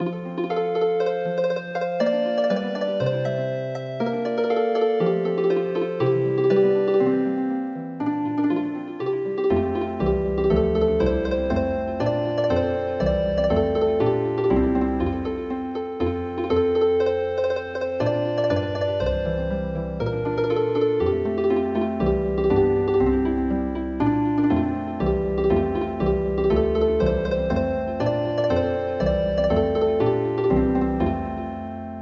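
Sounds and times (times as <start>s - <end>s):
traditional healing harp music: 0.0s - 32.0s.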